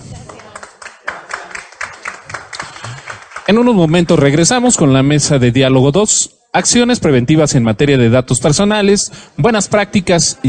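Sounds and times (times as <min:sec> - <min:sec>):
applause: 0:00.0 - 0:05.0
speech: 0:03.5 - 0:10.4.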